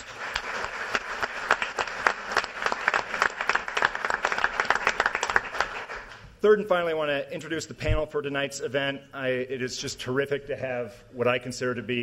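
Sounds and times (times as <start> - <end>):
audience applause: 0.0 - 6.2
speech: 6.4 - 12.0.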